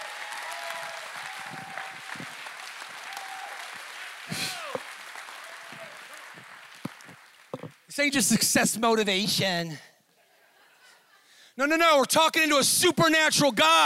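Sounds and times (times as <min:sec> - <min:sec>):
audience shouting: 0:00.0 - 0:02.4, 0:03.0 - 0:06.3
audience clapping: 0:00.0 - 0:08.5
speech: 0:08.0 - 0:09.9, 0:11.6 - 0:13.8
laughter: 0:10.2 - 0:11.4.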